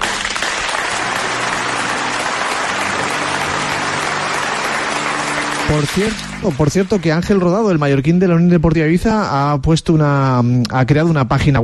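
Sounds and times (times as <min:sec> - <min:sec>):
applause by football team staff: 0:00.0 - 0:08.2
speech: 0:05.7 - 0:11.6.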